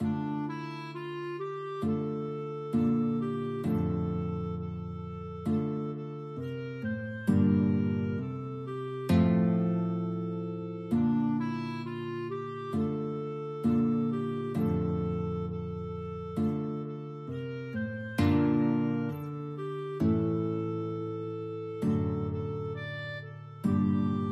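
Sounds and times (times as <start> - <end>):
guitar and clarinet duet: 0.0 - 24.3.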